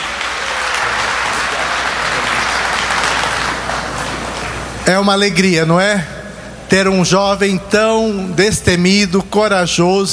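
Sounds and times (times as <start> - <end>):
audience applause: 0.0 - 4.8
speech: 4.9 - 10.1.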